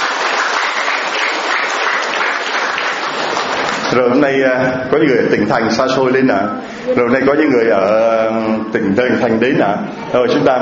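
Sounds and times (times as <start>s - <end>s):
audience applause: 0.0s - 4.2s
speech: 3.9s - 10.6s.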